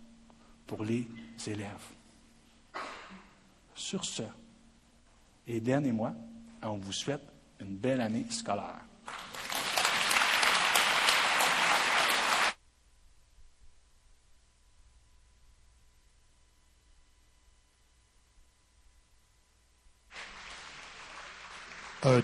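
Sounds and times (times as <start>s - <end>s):
speech: 0.7s - 2.0s, 3.8s - 4.4s, 5.5s - 8.9s, 22.0s - 22.2s
audience applause: 9.1s - 12.6s, 20.1s - 22.2s.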